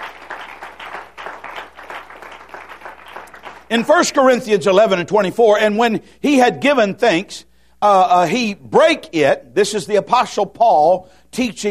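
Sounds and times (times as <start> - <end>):
audience clapping hands in praise: 0.0 - 4.1
speech: 3.7 - 11.6.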